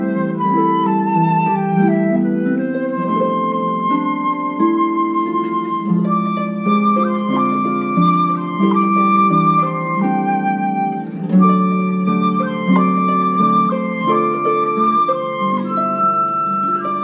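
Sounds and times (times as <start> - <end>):
flute: 0.0 - 17.0
harp: 0.0 - 17.0.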